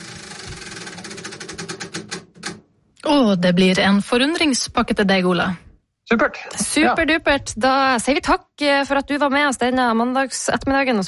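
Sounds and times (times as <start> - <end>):
prize wheel of fortune spinning: 0.0 - 2.6
speech: 3.1 - 11.0.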